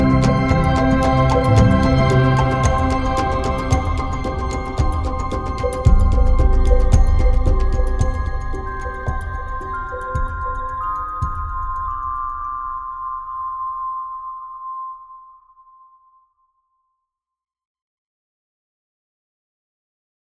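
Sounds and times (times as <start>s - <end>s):
rumba boxes: 0.0s - 14.2s.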